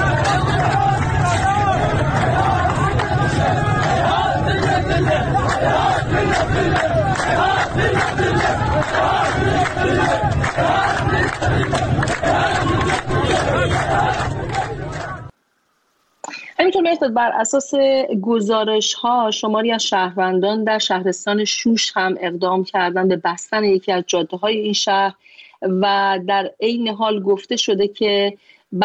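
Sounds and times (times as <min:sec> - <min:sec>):
protesters chanting a slogan outside an MP's home in Dasht-e Azadegan, Khuzestan: 0:00.0 - 0:15.3
speech: 0:17.0 - 0:28.8.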